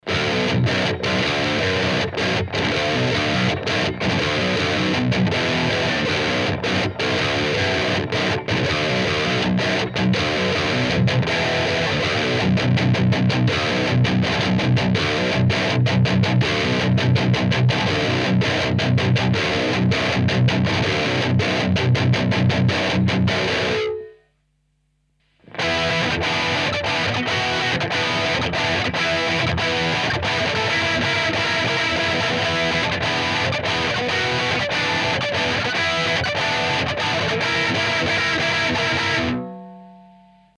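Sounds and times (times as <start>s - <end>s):
Schecter Eclipse seven-string electric guitar with distortion: 0.0s - 40.5s.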